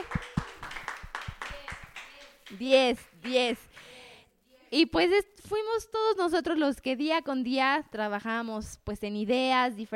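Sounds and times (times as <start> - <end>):
small group clapping: 0.0 - 4.2
speech: 2.5 - 3.9, 4.7 - 9.9.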